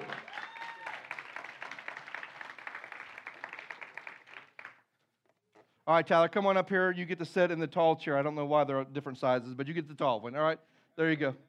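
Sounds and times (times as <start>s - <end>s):
whoop: 0.0s - 1.3s
audience applause welcoming a guest: 0.0s - 4.8s
speech: 5.9s - 11.4s.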